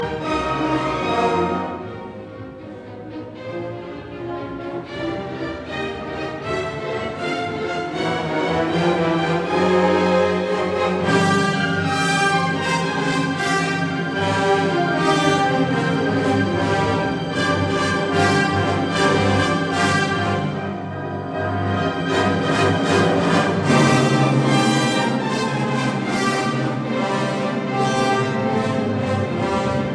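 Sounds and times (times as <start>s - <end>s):
symphony scherzo in E major: 0.0s - 29.9s.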